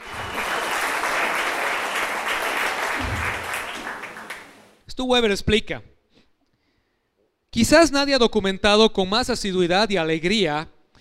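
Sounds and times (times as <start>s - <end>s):
audience applause: 0.0s - 4.8s
speech: 5.0s - 5.9s, 7.6s - 10.7s.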